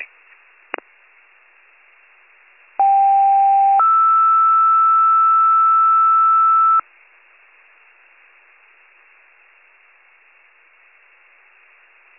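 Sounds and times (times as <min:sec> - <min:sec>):
fire pager alert: 0:02.8 - 0:06.8.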